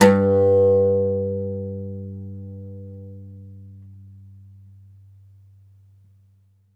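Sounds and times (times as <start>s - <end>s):
oud plucked strings: 0.0s - 4.7s.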